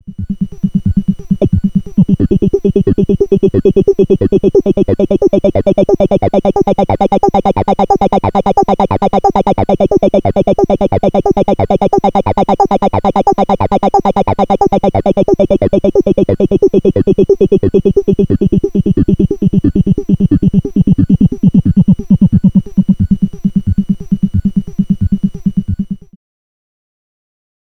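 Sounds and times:
ARP Avatar synthesizer VCF FM amount via wheel: 0:00.3 - 0:26.1.

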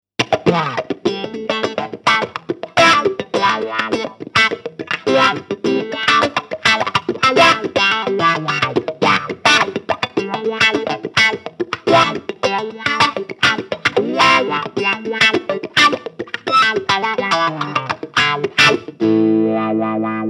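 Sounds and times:
clean boosted wah guitar lead: 0:00.2 - 0:20.2.

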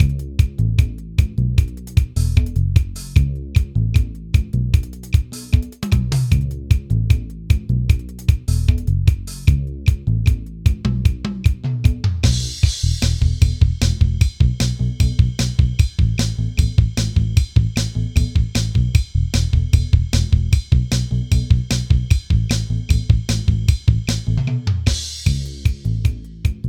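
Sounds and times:
SR18 drum machine rock beat: 0:00.0 - 0:26.6.

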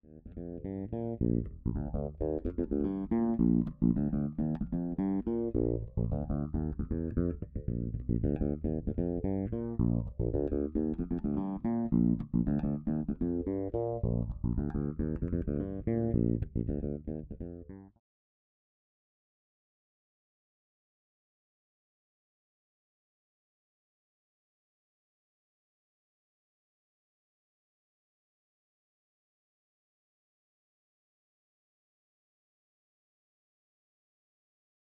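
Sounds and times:
finger-played fretless funk bass with phaser: 0:00.0 - 0:17.9.

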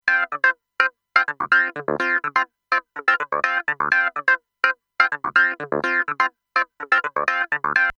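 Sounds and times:
Sonic Farm Xcalibur JC Clavinet playing: 0:00.0 - 0:07.9.

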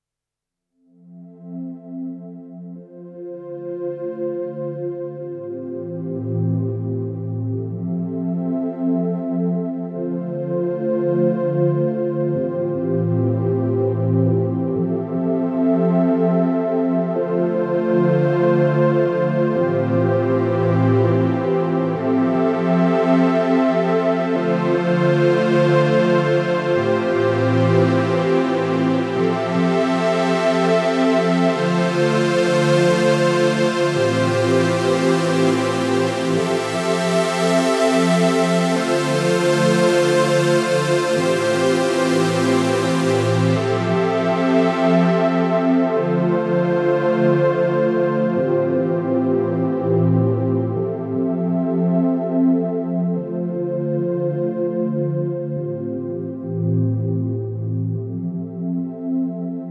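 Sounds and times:
OB-6 modern synthesizer pad: 0:01.0 - 0:59.7.

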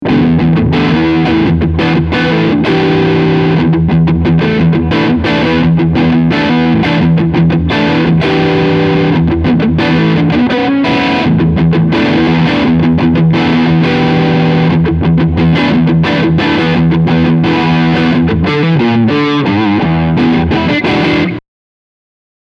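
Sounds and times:
crunch guitar tone with both pickups: 0:00.0 - 0:21.4.

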